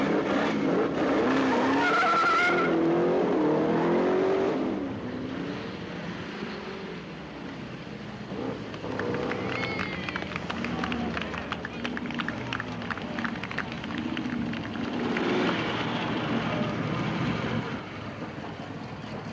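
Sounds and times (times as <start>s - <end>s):
drag race cars skidding with tires squealing: 0.0s - 4.4s, 8.4s - 19.3s
roaring drag race car engine: 0.0s - 19.3s.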